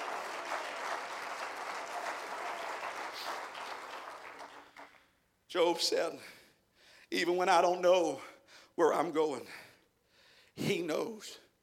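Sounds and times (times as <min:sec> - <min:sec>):
audience clapping hands: 0:00.0 - 0:05.2
speech: 0:05.5 - 0:06.4, 0:07.1 - 0:09.7, 0:10.6 - 0:11.4.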